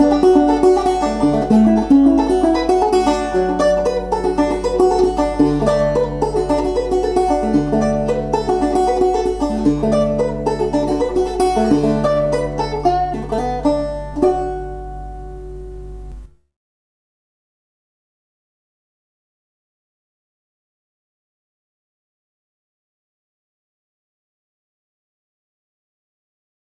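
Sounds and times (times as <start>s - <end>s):
march music: 0.0s - 16.3s.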